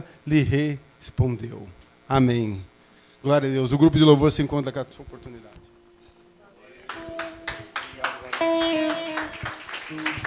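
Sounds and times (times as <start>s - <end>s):
speech: 0.2s - 5.6s
audience clapping: 6.9s - 10.2s.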